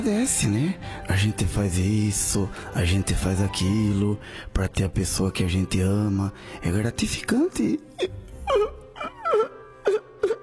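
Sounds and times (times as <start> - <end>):
speech: 0.0 - 8.2
whimpering crying: 8.0 - 10.4.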